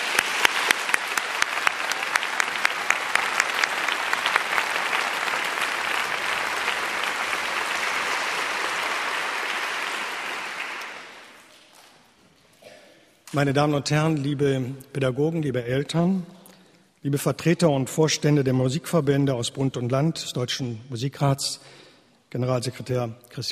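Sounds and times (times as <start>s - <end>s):
audience applause in concert hall: 0.0s - 11.7s
speech: 13.3s - 16.3s, 17.0s - 23.5s.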